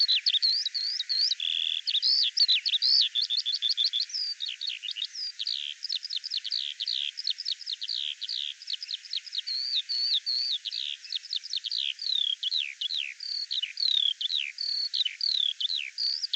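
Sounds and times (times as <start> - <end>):
bird song: 0.0 - 16.3.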